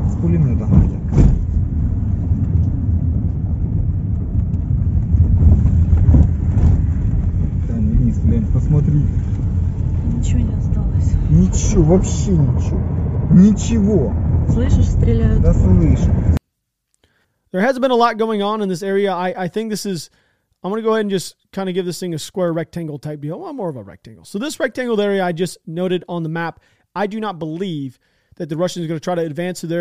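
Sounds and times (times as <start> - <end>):
car road rumble driving out of Mariupol: 0.0 - 16.4
speech: 11.8 - 16.4, 17.5 - 29.7.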